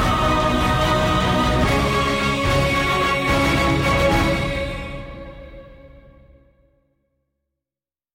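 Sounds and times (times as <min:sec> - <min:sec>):
choir singing: 0:00.0 - 0:06.4.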